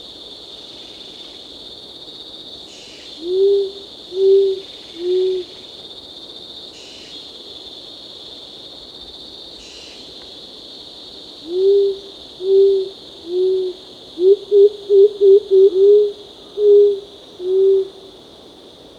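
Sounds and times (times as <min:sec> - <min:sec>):
insects buzzing: 0:00.0 - 0:18.9
short-toed coucal hooting: 0:03.2 - 0:05.5, 0:11.5 - 0:18.0.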